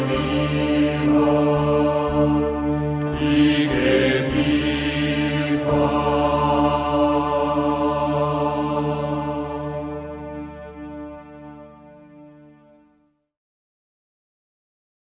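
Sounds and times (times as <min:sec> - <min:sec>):
Lenten entrance hymn: 0:00.0 - 0:11.7.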